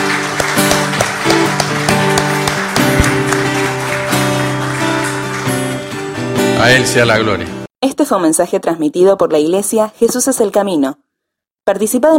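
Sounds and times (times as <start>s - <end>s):
audience applauding: 0.0s - 7.4s
speech: 6.6s - 11.0s, 11.7s - 12.1s.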